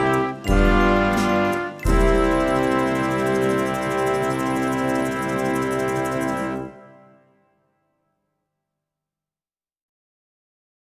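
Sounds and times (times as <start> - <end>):
C major scale: 0.0 - 7.5.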